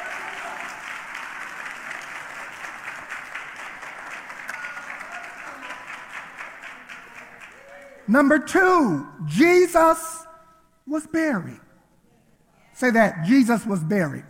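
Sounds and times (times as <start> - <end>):
audience clapping hands: 0.0 - 8.4
speech: 8.1 - 10.1, 10.9 - 11.6, 12.8 - 14.2.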